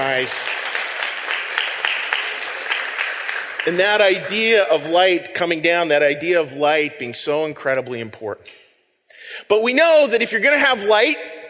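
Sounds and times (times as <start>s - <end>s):
speech: 0.0s - 0.6s, 3.6s - 8.6s, 9.3s - 11.4s
audience clapping: 0.0s - 5.0s.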